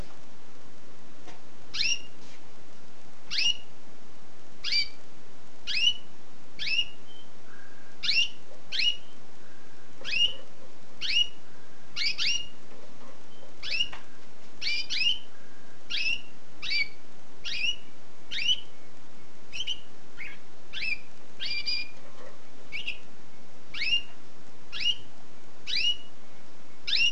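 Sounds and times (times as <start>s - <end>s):
light hiss: 0.0s - 27.1s
canary chirping: 1.7s - 2.2s, 3.3s - 3.8s, 4.6s - 5.0s, 5.6s - 23.1s, 23.7s - 26.2s, 26.8s - 27.1s.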